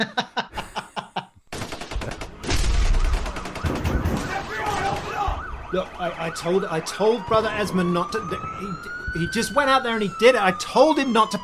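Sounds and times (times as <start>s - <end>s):
speech: 0.0s - 0.2s, 5.7s - 11.4s
laughter: 0.0s - 1.4s
machine gun fire: 1.5s - 5.3s.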